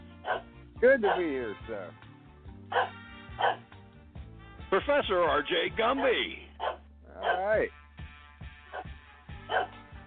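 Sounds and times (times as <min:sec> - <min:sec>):
dog barking in short yaps: 0:00.2 - 0:01.3, 0:02.7 - 0:03.7, 0:06.0 - 0:07.6, 0:08.7 - 0:09.8
speech: 0:00.8 - 0:02.0, 0:02.7 - 0:03.6, 0:04.7 - 0:06.4, 0:07.3 - 0:07.8.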